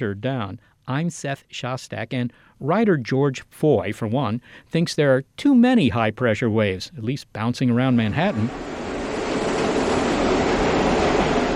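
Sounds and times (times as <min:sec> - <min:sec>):
speech: 0:00.0 - 0:08.8
subway trains arriving at 79th Street and Broadway station: 0:07.9 - 0:11.5.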